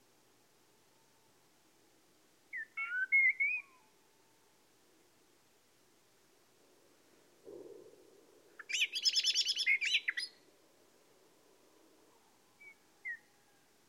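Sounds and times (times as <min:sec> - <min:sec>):
common blackbird singing: 0:02.5 - 0:03.8, 0:08.6 - 0:10.4.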